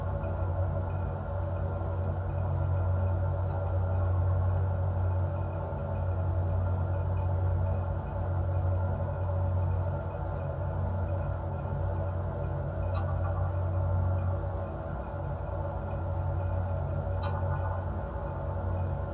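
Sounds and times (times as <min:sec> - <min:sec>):
machine ambience: 0:00.1 - 0:19.1.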